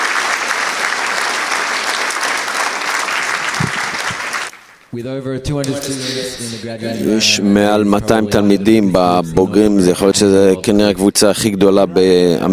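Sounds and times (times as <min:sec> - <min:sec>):
audience applause: 0:00.0 - 0:04.9
speech: 0:04.9 - 0:12.5.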